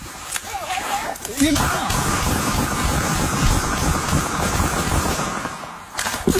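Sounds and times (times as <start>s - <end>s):
gunshots fired into a car: 1.4s - 6.3s.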